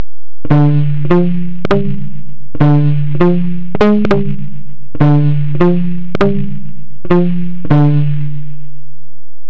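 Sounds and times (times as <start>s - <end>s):
clean electric guitar: 0.4s - 9.1s.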